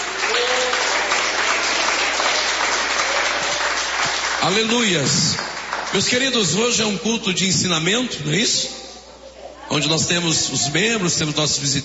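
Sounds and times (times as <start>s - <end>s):
crowd applauding: 0.0s - 6.4s
speech: 4.5s - 8.8s, 9.7s - 11.8s.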